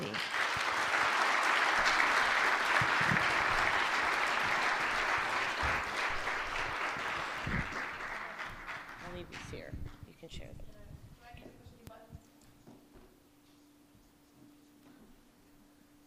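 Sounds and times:
audience applause: 0:00.0 - 0:09.6.

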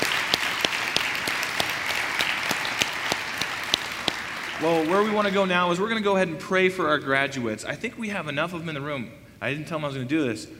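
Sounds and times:
audience applause: 0:00.0 - 0:05.5
speech: 0:04.6 - 0:10.5.

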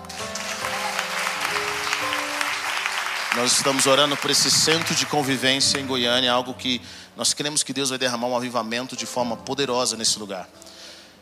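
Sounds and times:
audience applause: 0:00.0 - 0:05.9
speech: 0:03.4 - 0:10.8.

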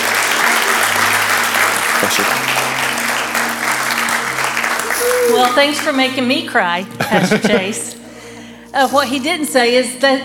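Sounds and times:
church audience applause welcoming guest speakers: 0:00.0 - 0:06.2
speech: 0:05.4 - 0:08.0, 0:08.7 - 0:10.2
laughter: 0:06.9 - 0:08.0.

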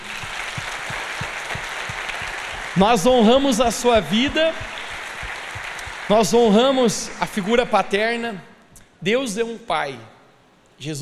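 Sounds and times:
audience applause: 0:00.0 - 0:07.7
speech: 0:02.8 - 0:04.7, 0:06.1 - 0:10.2, 0:10.8 - 0:11.0.

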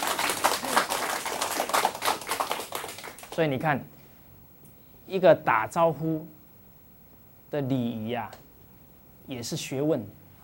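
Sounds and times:
audience applause: 0:00.0 - 0:03.4
speech: 0:03.4 - 0:04.0, 0:05.1 - 0:06.4, 0:07.5 - 0:08.4, 0:09.3 - 0:10.4.

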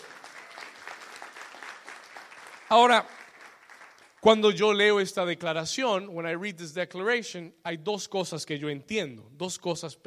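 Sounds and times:
audience applause: 0:00.0 - 0:04.2
speech: 0:02.7 - 0:03.2, 0:04.2 - 0:10.0.

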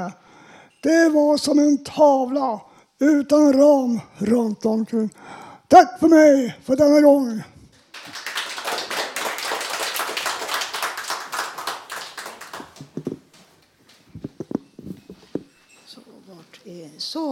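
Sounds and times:
speech: 0:00.0 - 0:07.5
crowd applause: 0:07.9 - 0:13.2.

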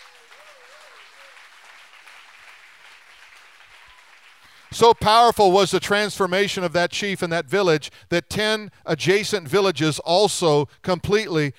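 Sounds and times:
audience clapping: 0:00.0 - 0:05.4
speech: 0:04.7 - 0:11.5.

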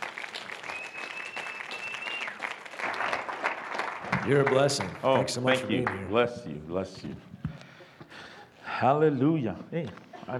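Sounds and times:
audience applauding: 0:00.0 - 0:06.1
speech: 0:04.2 - 0:07.3, 0:08.8 - 0:10.3.

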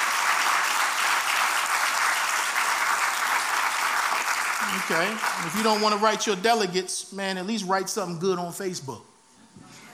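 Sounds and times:
audience applause: 0:00.0 - 0:06.2
speech: 0:04.7 - 0:09.1.

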